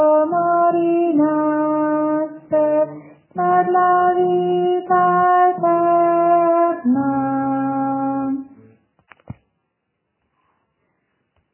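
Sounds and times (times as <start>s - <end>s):
contralto voices singing: 0.0s - 8.7s.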